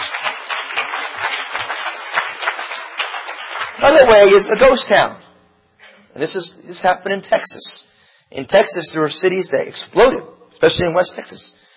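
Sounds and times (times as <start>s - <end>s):
crowd clapping: 0.0s - 4.9s
speech: 3.8s - 5.2s, 6.2s - 11.6s.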